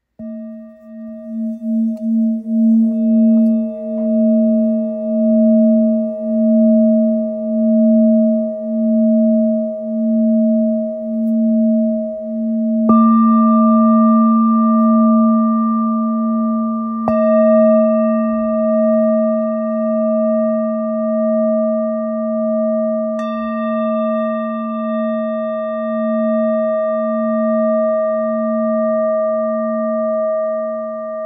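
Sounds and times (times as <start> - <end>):
therapeutic singing bowl in D sharp: 0.0 - 31.2.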